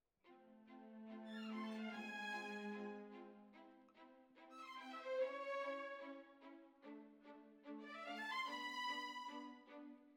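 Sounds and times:
violins: 0.3 - 10.1.

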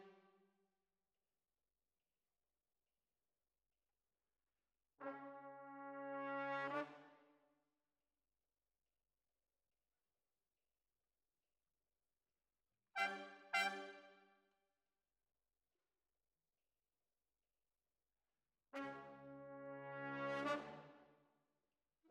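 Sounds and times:
trumpet: 5.0 - 7.2, 13.0 - 14.2, 18.7 - 21.0.

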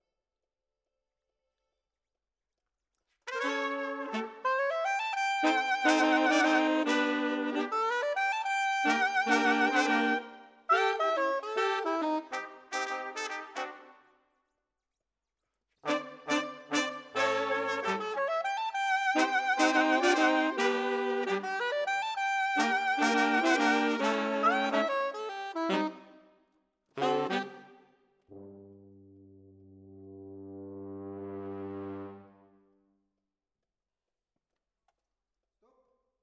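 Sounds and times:
saxophone: 3.3 - 14.0, 15.9 - 26.2, 27.0 - 28.6.

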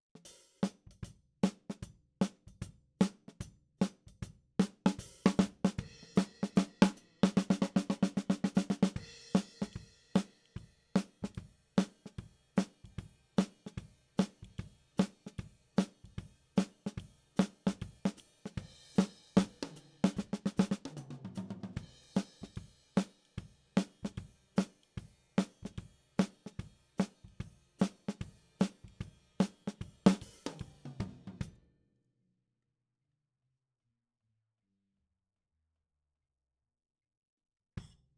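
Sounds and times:
snare drum top in ragtime style: 3.0 - 4.0, 4.6 - 31.5.

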